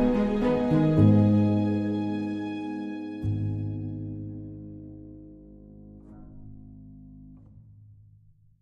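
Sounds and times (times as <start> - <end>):
band strings: 0.0 - 4.5
dramatic dark piano: 0.0 - 7.6.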